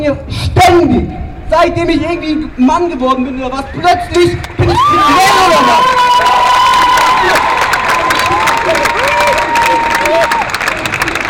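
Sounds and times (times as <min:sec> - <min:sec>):
speech: 0:00.0 - 0:06.4
audience clapping and cheering: 0:04.4 - 0:11.2.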